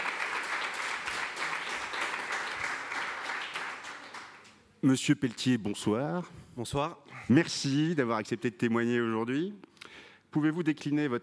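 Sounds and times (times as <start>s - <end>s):
audience applause: 0.0s - 4.5s
speech: 4.8s - 9.7s, 10.3s - 11.2s.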